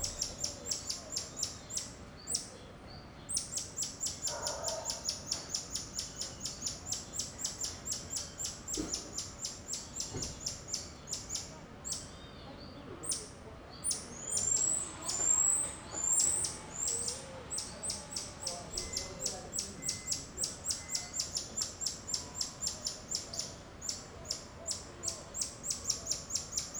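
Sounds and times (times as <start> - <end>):
birds in a Rio de Janeiro suburb: 0.0 - 26.7
dogs in a Rio de Janeiro suburb: 4.2 - 5.5.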